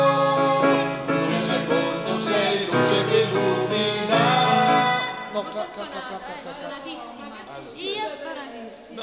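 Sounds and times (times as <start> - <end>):
people singing together: 0.0 - 6.2.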